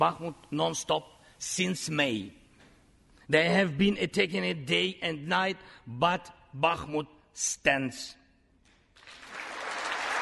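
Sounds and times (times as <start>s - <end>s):
speech: 0.0s - 2.4s, 3.3s - 8.2s
large crowd applauding in a legislative chamber: 9.0s - 10.1s.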